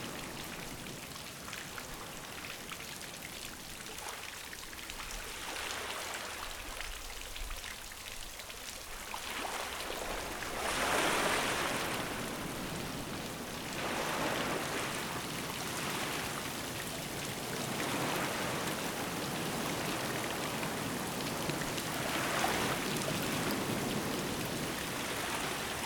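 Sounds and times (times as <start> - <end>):
rainfall along the ocean shore: 0.0 - 25.8.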